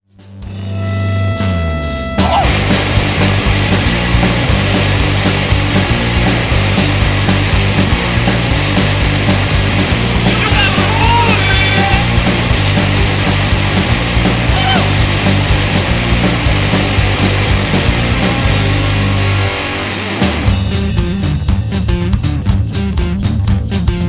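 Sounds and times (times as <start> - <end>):
wrecked chords: 0.3 - 24.0.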